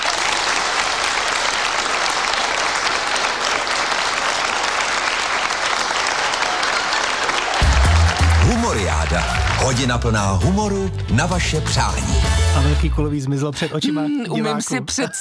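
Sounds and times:
audience applause: 0.0s - 12.8s
speech: 8.8s - 15.1s.

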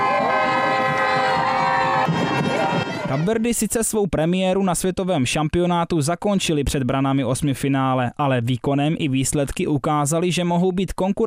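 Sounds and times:
horns tooting: 0.0s - 3.4s
street crowd cheering passing footballers: 0.0s - 3.6s
speech: 3.1s - 11.2s.

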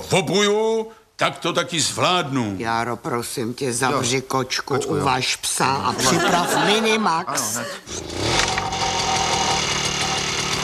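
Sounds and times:
speech: 0.0s - 8.4s
laughter: 5.9s - 7.9s
lawn mower engine running: 7.9s - 10.6s.

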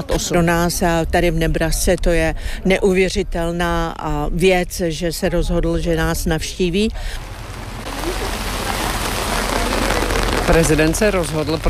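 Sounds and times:
speech: 0.0s - 7.3s, 10.5s - 11.6s
steady rain striking a surface: 6.0s - 11.6s.

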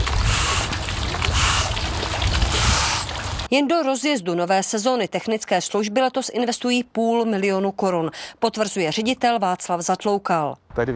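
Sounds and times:
water running in pool: 0.0s - 3.5s
speech: 3.5s - 10.9s.

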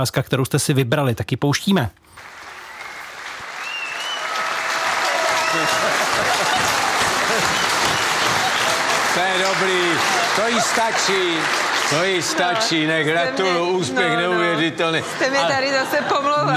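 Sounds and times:
speech: 0.0s - 2.3s, 9.5s - 16.5s
studio audience applauding: 2.2s - 13.8s
laughter: 5.2s - 16.5s.

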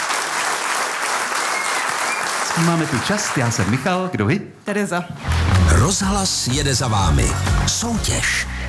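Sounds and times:
audience applause for quiz contestants at a live game show: 0.0s - 4.1s, 5.2s - 8.0s
speech: 2.6s - 8.6s.

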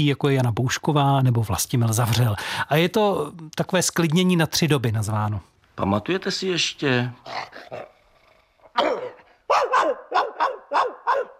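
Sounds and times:
speech: 0.0s - 8.0s, 8.8s - 11.3s
dog barking: 8.8s - 11.3s.

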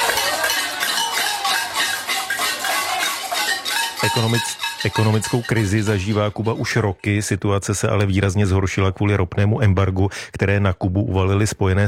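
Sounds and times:
protesters banging on pots: 0.0s - 7.3s
speech: 4.0s - 11.8s.

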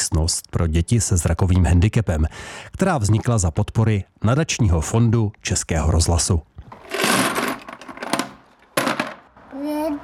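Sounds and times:
speech: 0.1s - 7.4s
plastic toy cars tumbling into a box: 6.7s - 9.2s.

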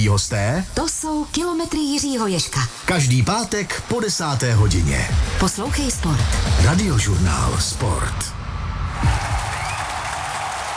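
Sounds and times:
speech: 0.0s - 8.4s
applause: 9.0s - 10.7s.

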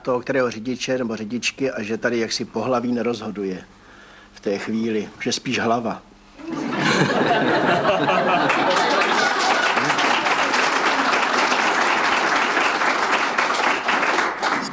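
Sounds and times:
speech: 0.0s - 3.8s, 4.4s - 8.9s
faint laughter: 6.4s - 11.5s
crowd of women applauding: 6.4s - 14.7s.

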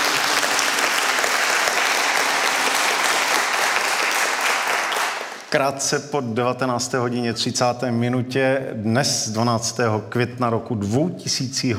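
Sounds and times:
audience applause: 0.0s - 5.6s
speech: 5.5s - 11.7s.

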